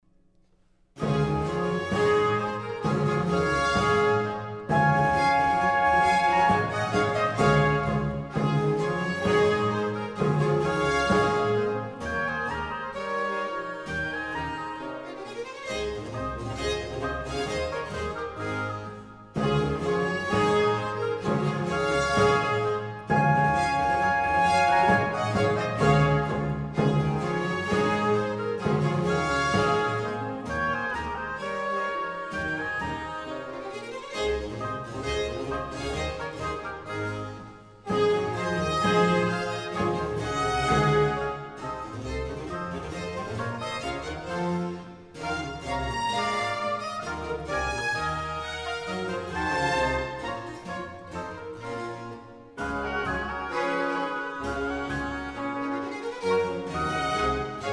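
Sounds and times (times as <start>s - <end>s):
gavotte from an overture in D major: 1.0s - 57.7s.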